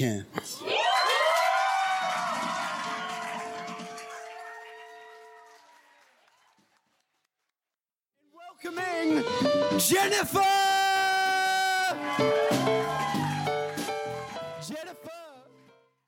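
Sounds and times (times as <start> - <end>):
speech: 0.0 - 0.6, 9.8 - 10.6
audience cheering and whooping: 0.6 - 6.9, 10.5 - 14.7.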